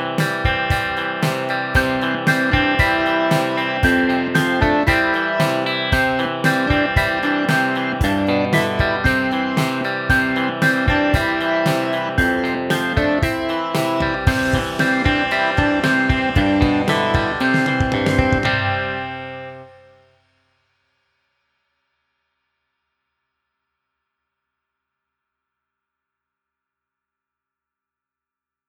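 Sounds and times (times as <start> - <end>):
ukulele: 0.2 - 19.3.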